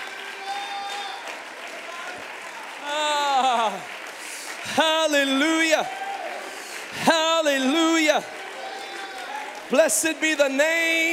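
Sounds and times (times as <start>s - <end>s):
audience clapping: 0.0s - 11.1s
speech: 4.8s - 6.0s, 8.1s - 8.4s, 9.7s - 11.1s.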